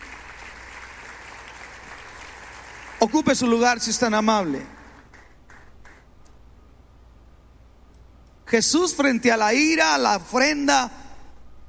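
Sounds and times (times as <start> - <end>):
audience applause: 0.0 - 3.6, 4.7 - 6.0
speech: 3.0 - 4.8, 8.5 - 11.0.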